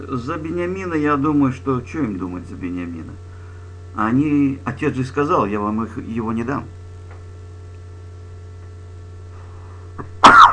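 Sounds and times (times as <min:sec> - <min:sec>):
speech: 0:00.0 - 0:03.3, 0:03.9 - 0:06.8
person sneezing: 0:10.0 - 0:10.5.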